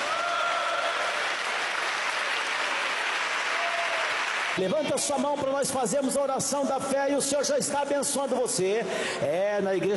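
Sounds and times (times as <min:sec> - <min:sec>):
people clapping: 0:00.0 - 0:04.6
speech: 0:04.6 - 0:09.9.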